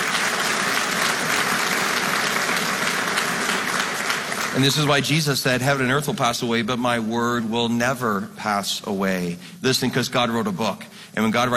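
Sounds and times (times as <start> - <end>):
audience clapping: 0.0 - 5.4
speech: 4.6 - 11.5.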